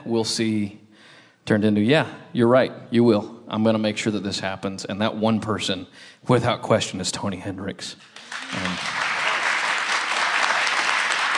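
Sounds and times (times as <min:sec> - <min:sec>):
speech: 0:00.0 - 0:00.8, 0:01.4 - 0:09.0
crowd applause: 0:08.0 - 0:11.3.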